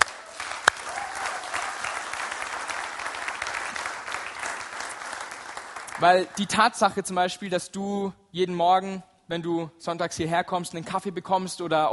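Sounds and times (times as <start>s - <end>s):
audience applause: 0.0s - 6.4s
speech: 6.0s - 11.9s.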